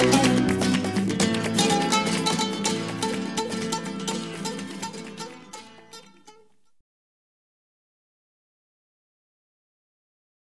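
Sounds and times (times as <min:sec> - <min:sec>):
pure flamenco music: 0:00.0 - 0:06.8.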